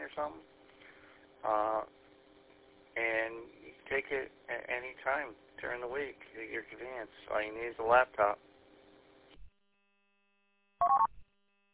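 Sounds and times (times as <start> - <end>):
speech: 0.1 - 0.6, 1.4 - 2.0, 3.0 - 8.5
phone ringing with electronic tone bursts and a warbling trill: 10.8 - 11.1.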